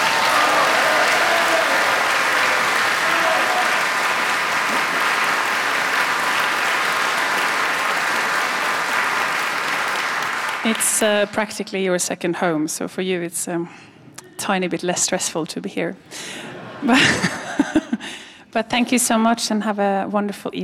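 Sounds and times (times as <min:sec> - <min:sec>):
concert audience applause: 0:00.0 - 0:11.3
speech: 0:11.0 - 0:17.8, 0:18.6 - 0:20.6
laughter: 0:16.4 - 0:18.0.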